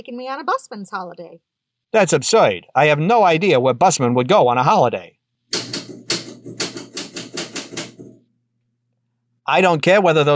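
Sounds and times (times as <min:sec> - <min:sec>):
speech: 0:00.0 - 0:05.2, 0:09.5 - 0:10.3
typing on a typewriter: 0:05.5 - 0:08.2.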